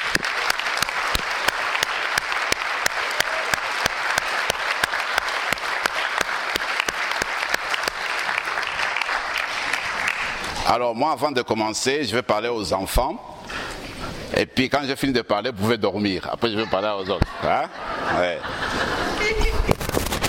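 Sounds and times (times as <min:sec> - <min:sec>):
audience applause: 0:00.0 - 0:10.6
speech: 0:10.7 - 0:13.3, 0:14.4 - 0:19.6
laughter: 0:16.4 - 0:19.7.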